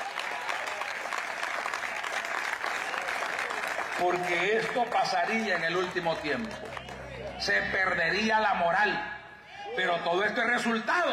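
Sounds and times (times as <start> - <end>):
audience applauding: 0.0 - 7.9
speech: 4.0 - 9.1, 9.8 - 11.1.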